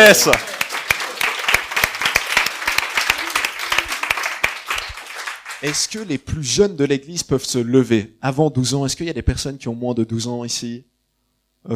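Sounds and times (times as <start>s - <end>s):
speech: 0.0s - 0.5s, 5.6s - 10.9s
audience applause: 0.0s - 6.0s.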